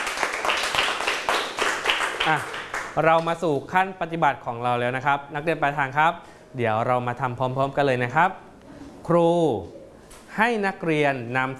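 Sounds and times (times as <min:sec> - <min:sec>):
hand clapping: 0:00.0 - 0:03.4
speech: 0:02.3 - 0:08.4, 0:09.1 - 0:11.5.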